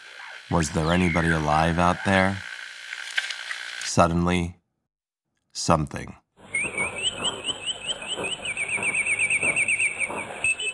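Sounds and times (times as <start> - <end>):
bulbul song: 0.2 - 2.2, 6.5 - 10.7
radio station call sign: 0.5 - 2.4
speech: 0.5 - 2.5, 4.0 - 4.6, 5.6 - 6.2.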